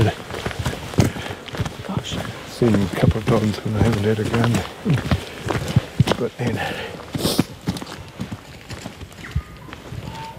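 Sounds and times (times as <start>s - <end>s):
footsteps crunching through bush: 0.0s - 10.3s
speech: 2.6s - 5.3s, 6.2s - 7.3s
faint bird chirp: 9.2s - 10.3s.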